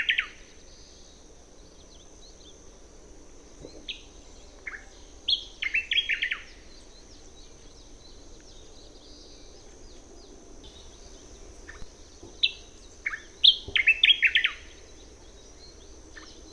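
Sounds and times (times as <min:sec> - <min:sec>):
bird calling: 0:00.0 - 0:01.1, 0:03.6 - 0:07.9, 0:10.7 - 0:16.4.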